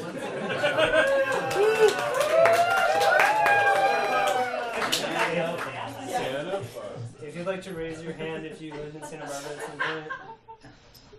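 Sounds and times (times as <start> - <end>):
laughter: 0.0 - 2.2, 8.0 - 10.8
crowd cheering and whooping: 0.4 - 4.9
hand claps: 1.0 - 5.7
speech: 7.6 - 10.4.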